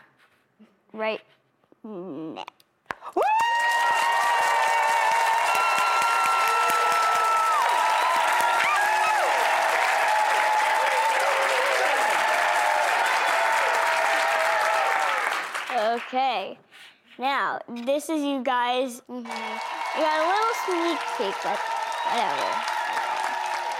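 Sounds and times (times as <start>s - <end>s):
speech: 0.6s - 3.3s, 16.0s - 16.6s, 17.2s - 23.0s
audience cheering: 3.1s - 15.7s, 19.3s - 23.7s.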